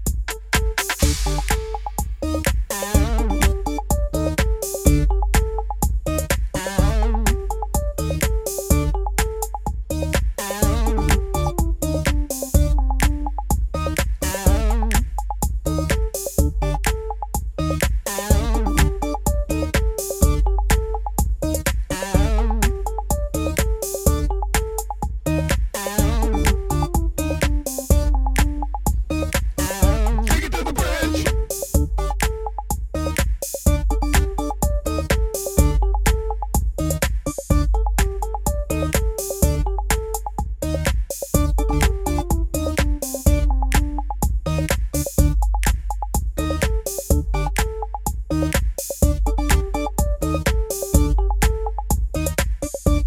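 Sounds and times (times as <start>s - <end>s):
instrumental music: 0.1s - 53.0s
background vocals: 29.6s - 31.5s.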